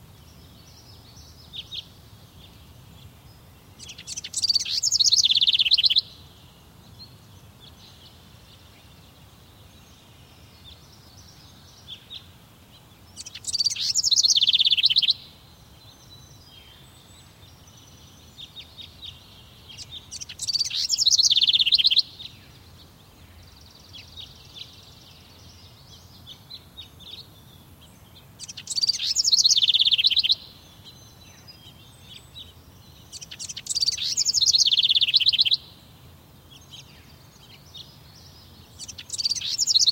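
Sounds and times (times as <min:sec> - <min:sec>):
bird trilled song: 0:00.3 - 0:06.2, 0:13.0 - 0:22.6, 0:23.3 - 0:39.9.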